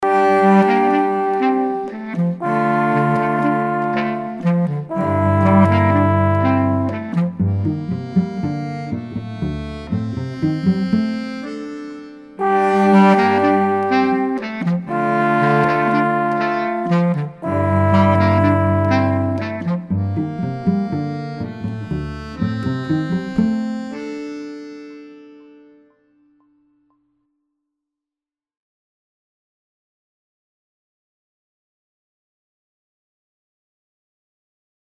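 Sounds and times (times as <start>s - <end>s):
interlude music: 0.0s - 26.5s.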